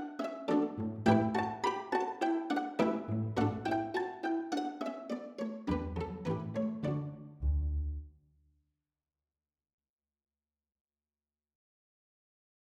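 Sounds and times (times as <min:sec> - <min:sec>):
plucked strings: 0:00.0 - 0:08.0.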